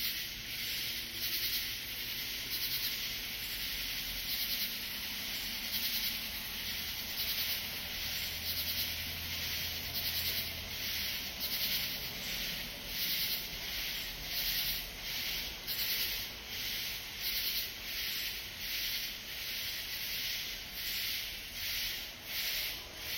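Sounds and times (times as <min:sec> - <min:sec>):
katydid calling: 0:00.0 - 0:23.1.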